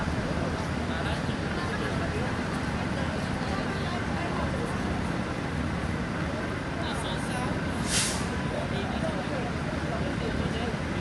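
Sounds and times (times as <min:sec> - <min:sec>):
bus arriving and departing: 0:00.0 - 0:10.9
cars passing by slowly: 0:00.0 - 0:10.9
crowd walla in Singapore: 0:00.0 - 0:10.9
street traffic in Singapore: 0:00.0 - 0:10.9.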